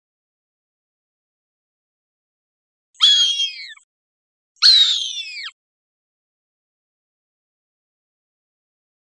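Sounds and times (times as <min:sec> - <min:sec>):
Cooper's hawk screaming: 0:03.0 - 0:03.8, 0:04.6 - 0:05.5.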